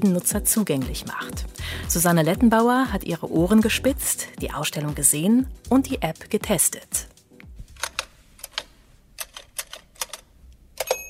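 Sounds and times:
speech: 0:00.0 - 0:07.1
keys striking on a Williams No. 2 typewriter from 1895: 0:09.2 - 0:11.0.

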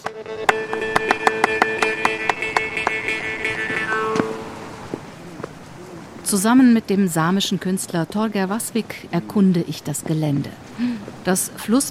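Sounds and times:
musicians clapping: 0:00.0 - 0:04.3
jaw harp playing: 0:00.0 - 0:06.2
speech: 0:06.3 - 0:11.9.

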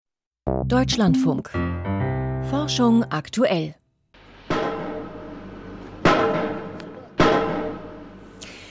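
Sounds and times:
speech: 0:00.6 - 0:03.8
heavy metallic pile driving blows at LNG terminal construction site: 0:04.2 - 0:08.7.

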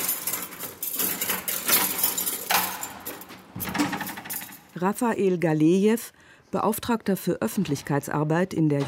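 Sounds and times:
keys jingling and scraping in a heavy prison door lock: 0:00.0 - 0:04.9
speech: 0:04.8 - 0:08.8.

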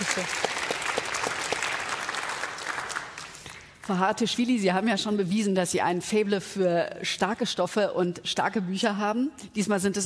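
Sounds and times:
audience applause: 0:00.0 - 0:03.7
speech: 0:00.2 - 0:00.5, 0:03.9 - 0:10.0.

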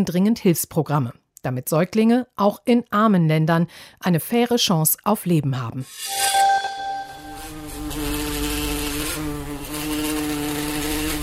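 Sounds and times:
speech: 0:00.0 - 0:06.4
bumblebee buzzing: 0:07.2 - 0:11.2.

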